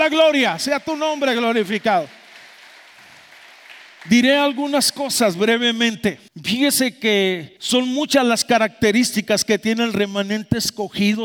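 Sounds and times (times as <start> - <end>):
speech: 0.0 - 2.2, 4.0 - 11.2
audience applauding: 0.0 - 4.6.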